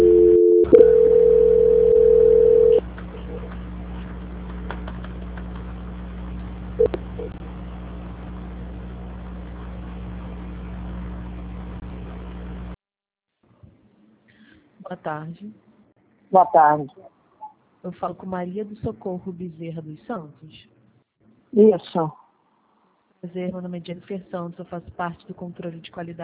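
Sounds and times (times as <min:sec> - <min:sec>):
telephone tone during call transfer: 0:00.0 - 0:02.8
low continuous telephone line hum: 0:00.0 - 0:12.8
speech: 0:15.0 - 0:15.7, 0:16.3 - 0:17.2, 0:17.8 - 0:20.8, 0:21.5 - 0:22.2, 0:23.2 - 0:26.2.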